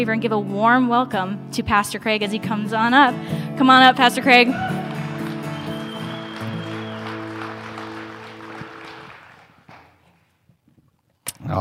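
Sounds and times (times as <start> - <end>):
speech: 0.0 - 4.8
audience clapping: 4.4 - 10.3.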